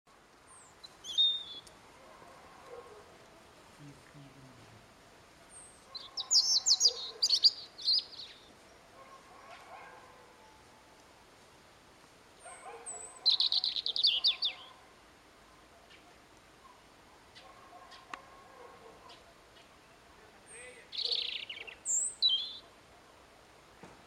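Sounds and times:
European robin song: 0:00.5 - 0:01.7, 0:05.5 - 0:08.5, 0:12.5 - 0:14.8, 0:19.1 - 0:22.7.

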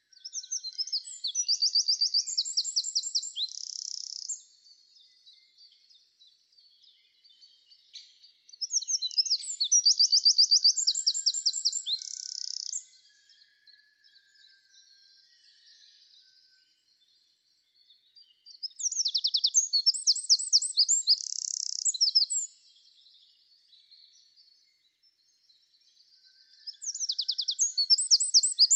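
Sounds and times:
Eurasian wren song: 0:00.0 - 0:05.6, 0:07.4 - 0:13.6, 0:18.4 - 0:23.0, 0:25.7 - 0:28.7.

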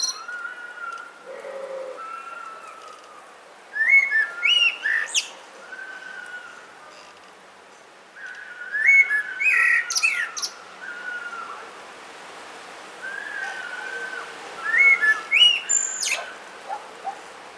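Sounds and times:
Common blackbird (Turdus merula) singing: 0:00.0 - 0:03.1, 0:03.7 - 0:06.6, 0:08.2 - 0:11.6, 0:13.0 - 0:16.3.

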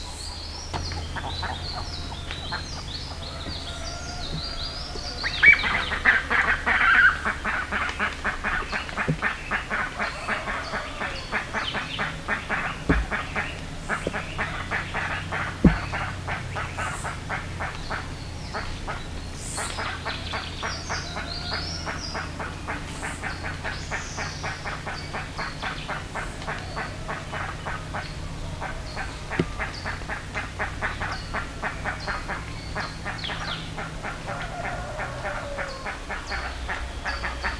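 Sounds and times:
steady low hum: 0:00.0 - 0:34.5
birds chattering: 0:00.0 - 0:37.5
speech: 0:00.8 - 0:03.0
low thump: 0:03.2 - 0:05.1, 0:12.8 - 0:13.4, 0:15.6 - 0:16.2.

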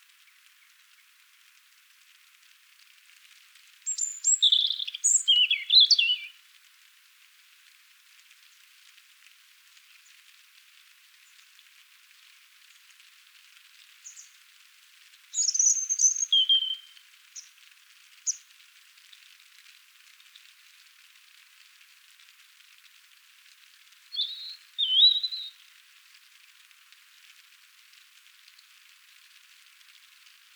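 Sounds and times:
European robin song: 0:03.9 - 0:06.4, 0:14.0 - 0:14.4, 0:15.3 - 0:17.5, 0:18.3 - 0:18.5, 0:24.1 - 0:25.6.

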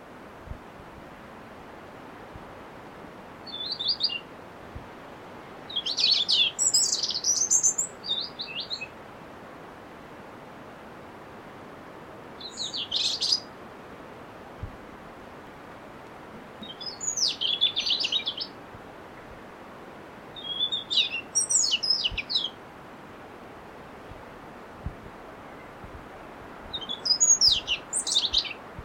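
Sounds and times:
steady hiss: 0:00.0 - 0:28.8
European robin song: 0:03.4 - 0:04.3, 0:05.6 - 0:09.0, 0:12.4 - 0:13.5, 0:16.4 - 0:18.6, 0:20.4 - 0:22.6, 0:26.7 - 0:28.6
soft low knocks: 0:24.0 - 0:25.2.

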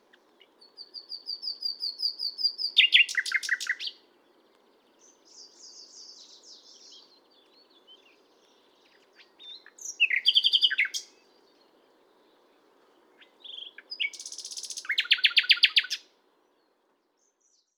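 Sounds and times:
Common nightingale song: 0:00.0 - 0:17.7.

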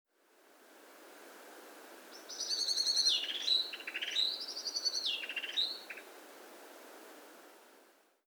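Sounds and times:
background hiss: 0:00.1 - 0:08.2
common blackbird calls: 0:02.2 - 0:06.1.

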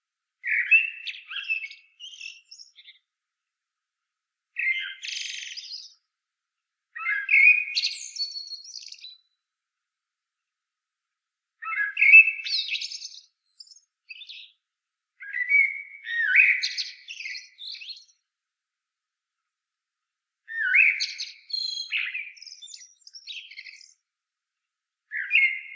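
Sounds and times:
common blackbird singing: 0:00.4 - 0:03.0, 0:04.6 - 0:06.0, 0:07.0 - 0:09.3, 0:11.6 - 0:14.6, 0:15.2 - 0:18.2, 0:20.5 - 0:24.0, 0:25.1 - 0:25.7.

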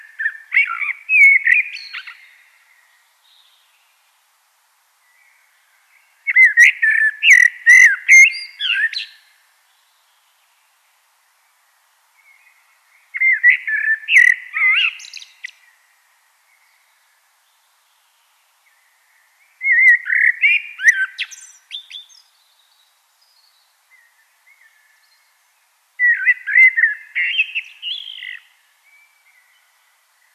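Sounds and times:
common blackbird song: 0:00.0 - 0:04.1, 0:05.0 - 0:10.7, 0:11.3 - 0:30.3.

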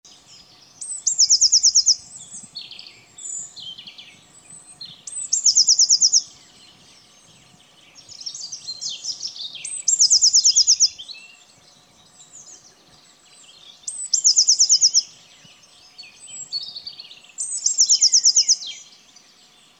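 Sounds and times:
birds twittering: 0:00.1 - 0:19.7
Eurasian blue tit trilling: 0:00.8 - 0:04.0, 0:04.8 - 0:06.8, 0:07.5 - 0:11.0, 0:13.8 - 0:15.1.

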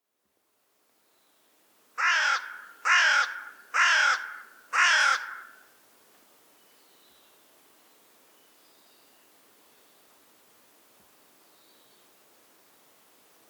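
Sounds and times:
Carrion crow Corvus corone cawing: 0:02.0 - 0:05.6.

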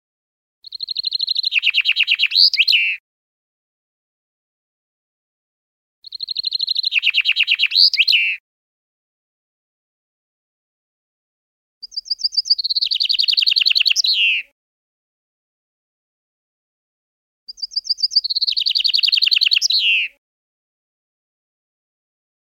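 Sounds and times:
common chaffinch Fringilla coelebs song: 0:00.6 - 0:03.0, 0:06.0 - 0:08.4, 0:11.8 - 0:14.6, 0:17.5 - 0:20.2.

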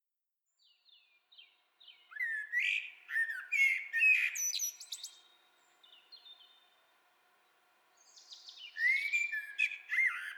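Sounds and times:
Common blackbird Turdus merula singing fluty phrases: 0:00.6 - 0:06.6, 0:08.0 - 0:10.3.

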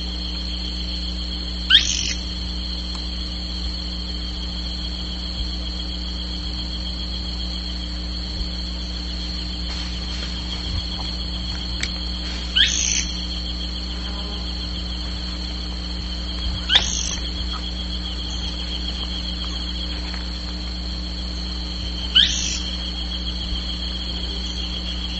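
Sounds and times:
electrical hum: 0:00.0 - 0:25.1
faint rustles: 0:08.4 - 0:22.1
bird swooping call: 0:12.4 - 0:13.3, 0:16.6 - 0:17.6, 0:22.1 - 0:22.7.

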